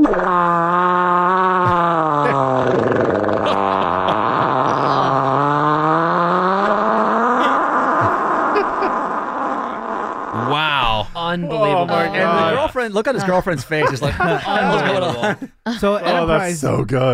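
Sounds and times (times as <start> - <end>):
long loud fart: 0.0 - 11.2
laughter: 1.7 - 2.6, 3.3 - 5.6, 7.4 - 9.8, 11.9 - 16.3
speech: 12.1 - 17.1.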